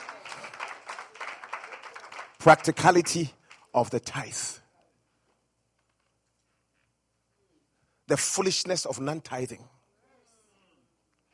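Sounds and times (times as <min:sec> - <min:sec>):
audience clapping: 0:00.0 - 0:04.2
speech: 0:02.4 - 0:04.6, 0:08.1 - 0:09.8.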